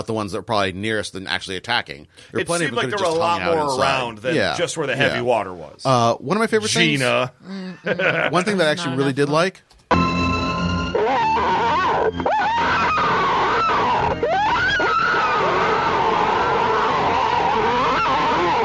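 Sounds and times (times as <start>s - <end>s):
speech: 0.0s - 10.1s, 11.0s - 14.7s
laughter: 7.7s - 8.8s
loud scary monster shriek: 11.0s - 18.6s.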